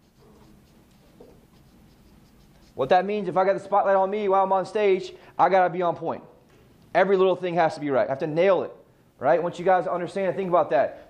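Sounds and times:
pen or pencil scratching on paper: 0:00.0 - 0:03.0
speech: 0:02.8 - 0:06.3, 0:06.9 - 0:11.0.

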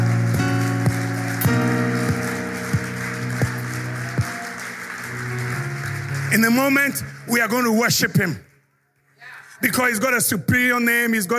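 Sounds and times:
audience applause: 0:00.0 - 0:08.4
speech: 0:06.3 - 0:08.5, 0:09.6 - 0:11.3.

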